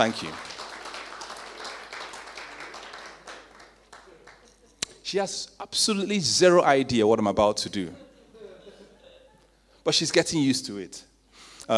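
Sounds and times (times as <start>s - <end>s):
speech: 0.0s - 0.5s, 5.1s - 8.0s, 9.8s - 11.1s
audience applause: 0.0s - 4.6s
laughter: 7.8s - 9.6s.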